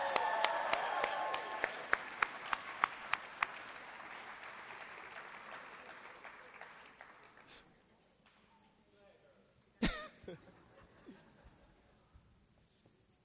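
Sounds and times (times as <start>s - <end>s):
audience applause for a woman: 0.0s - 7.6s
laughter: 9.8s - 12.0s.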